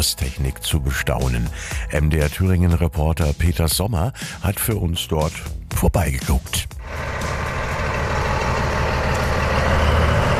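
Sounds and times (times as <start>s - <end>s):
speech: 0.0s - 7.3s
V100 diesel locomotive with 1100 hp engine starting to move: 6.8s - 10.3s.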